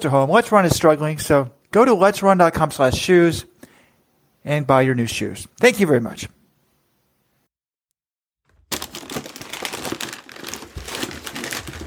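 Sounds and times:
speech: 0.0 - 3.5, 4.4 - 6.4
cardboard box crackling as it is pulled open: 8.5 - 11.8
tape ripping off a cardboard box: 8.7 - 11.8.

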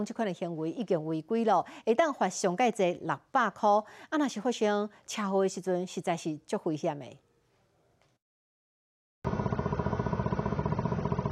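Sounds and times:
speech: 0.0 - 7.2
motorcycle riding by, recorded on a car's dashcam: 9.3 - 11.3.

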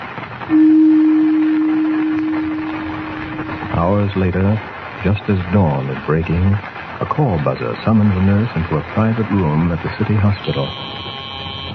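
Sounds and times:
faint hiss: 0.0 - 11.7
speech: 0.5 - 0.7, 4.0 - 11.0
gong struck and ringing: 0.5 - 3.8.

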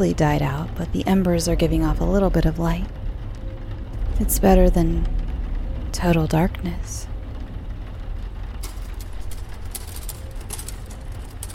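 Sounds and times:
speech: 0.0 - 3.0, 4.2 - 5.2, 5.9 - 7.1
typewriter typing: 8.6 - 11.5.

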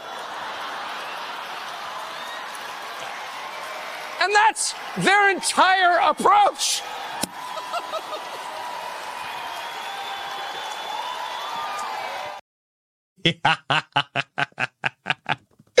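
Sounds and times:
laughter: 0.0 - 2.2, 7.4 - 8.8, 13.3 - 15.7
audience cheering at a Turning Point Action event: 0.0 - 12.4
speech: 4.2 - 7.1, 13.2 - 14.2.

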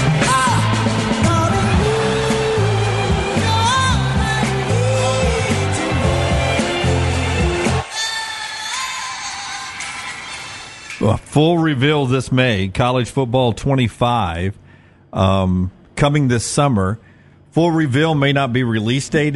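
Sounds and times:
steady brassy band music: 0.0 - 7.9
loud stadium crowd roaring and yelling: 0.0 - 8.6
speech: 11.1 - 19.3.

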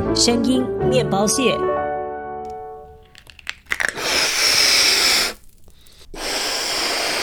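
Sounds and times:
speech: 0.2 - 1.7
balloon being blown up: 3.5 - 7.2.

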